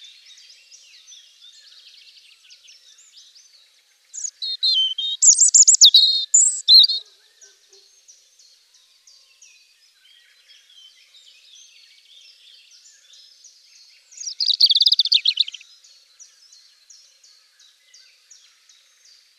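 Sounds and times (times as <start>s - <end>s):
European robin singing: 0.0s - 19.3s.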